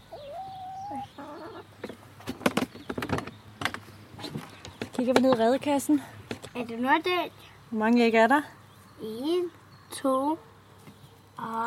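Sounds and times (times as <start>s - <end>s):
hens clucking: 0.0s - 3.2s
speech: 5.0s - 10.5s, 11.4s - 11.6s.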